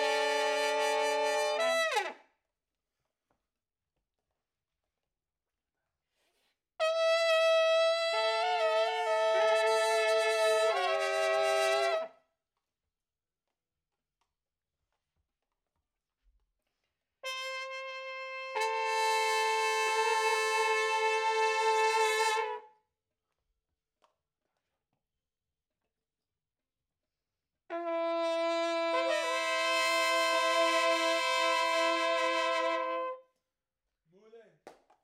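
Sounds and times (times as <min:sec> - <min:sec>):
trumpet in a room: 0:00.0 - 0:02.2, 0:06.8 - 0:12.2, 0:17.2 - 0:22.7, 0:27.7 - 0:33.3.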